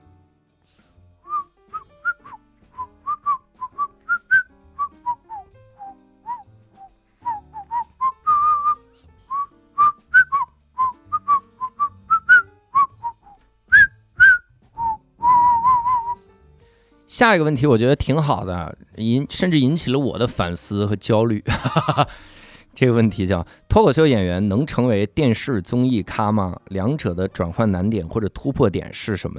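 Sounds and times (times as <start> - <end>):
person whistling a lively tune: 1.3 - 16.2
speech: 17.2 - 29.3
laughter: 21.5 - 22.1.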